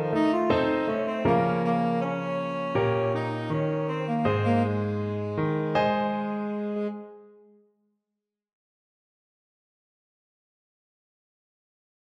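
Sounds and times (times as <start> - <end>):
tenor saxophone: 0.0 - 7.6.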